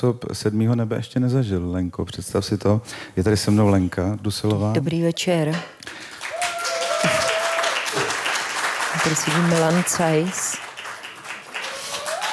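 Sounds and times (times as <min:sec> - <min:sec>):
speech: 0:00.0 - 0:06.1, 0:09.0 - 0:10.6
live audience applause: 0:05.9 - 0:12.3.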